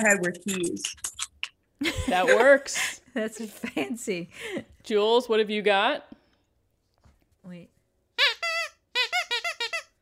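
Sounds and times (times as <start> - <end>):
speech: 0.0 - 1.1, 1.8 - 6.2, 7.4 - 7.7
squeaky donut-shaped noisemaker toy: 8.2 - 10.0.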